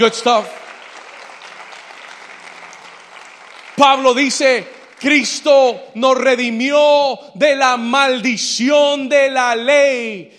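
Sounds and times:
speech: 0:00.0 - 0:00.6, 0:03.8 - 0:10.3
audience applause: 0:00.0 - 0:05.5.

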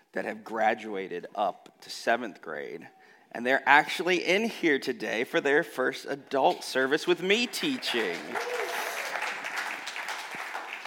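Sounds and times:
speech: 0:00.1 - 0:08.6
crowd applauding: 0:07.4 - 0:10.8.

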